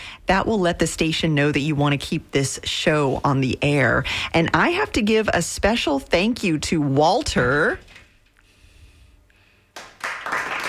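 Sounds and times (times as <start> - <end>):
speech: 0.3 - 7.9
applause: 9.7 - 10.6.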